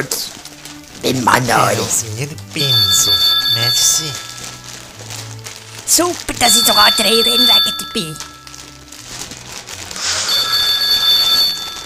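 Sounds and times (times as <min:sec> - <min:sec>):
speech: 0:01.0 - 0:04.3, 0:05.9 - 0:08.3
telephone ringing: 0:02.6 - 0:05.0, 0:06.3 - 0:08.8, 0:10.0 - 0:11.8.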